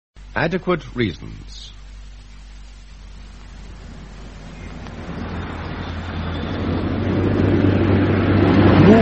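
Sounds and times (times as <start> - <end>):
speech: 0.4 - 1.8
car speeding past: 4.7 - 8.9.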